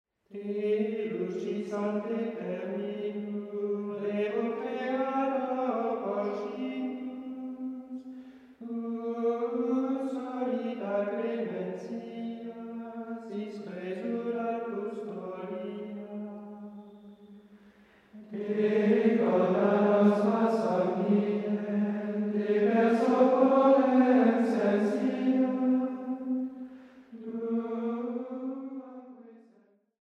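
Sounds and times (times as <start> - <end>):
Vespers Compline hymn singing: 0.3 - 29.3.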